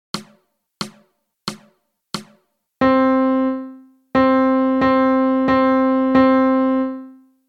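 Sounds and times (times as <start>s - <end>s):
melody: 2.8s - 7.3s.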